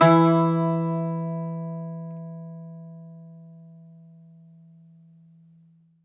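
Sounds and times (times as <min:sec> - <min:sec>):
Greek bazouki plucked strings: 0:00.0 - 0:04.2.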